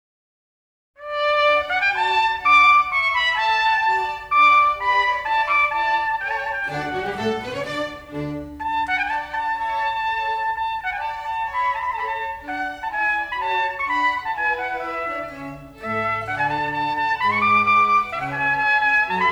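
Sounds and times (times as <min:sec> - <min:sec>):
orchestra: 0:01.0 - 0:19.3
trumpet concerto solo: 0:01.0 - 0:19.3.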